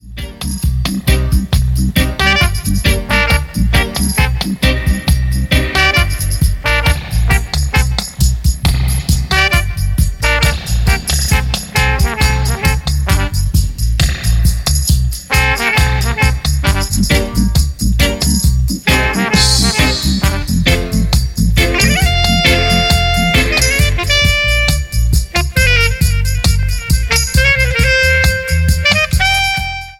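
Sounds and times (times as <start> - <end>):
dub music with horn: 0.0 - 29.9.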